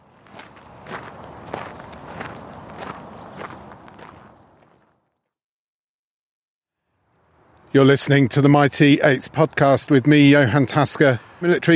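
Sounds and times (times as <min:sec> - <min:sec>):
footsteps walking among graves in a cemetery in Cambridge: 0:00.0 - 0:05.3
speech: 0:07.8 - 0:11.7.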